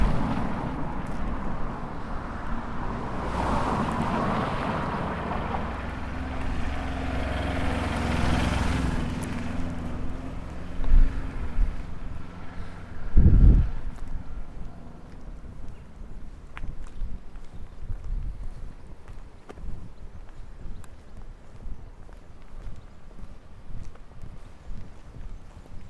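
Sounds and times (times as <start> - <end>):
street ambience: 0.0 - 25.8
birds: 14.4 - 25.8.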